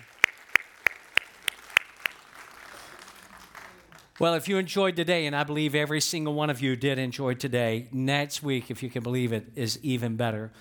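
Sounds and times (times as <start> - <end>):
audience applause: 0.0 - 4.4
speech: 4.2 - 10.5.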